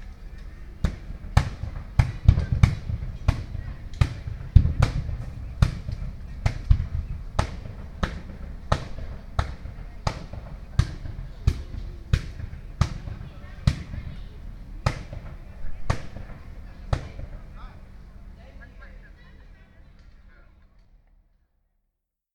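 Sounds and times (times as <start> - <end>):
beating sounds: 0.8 - 14.1.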